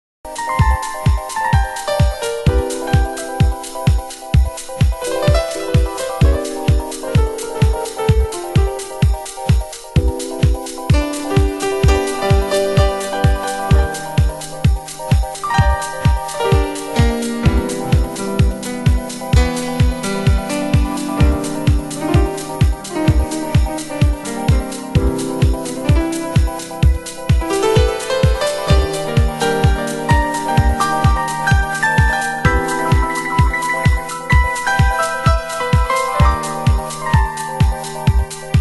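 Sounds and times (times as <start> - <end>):
music loop: 0.3 - 38.5.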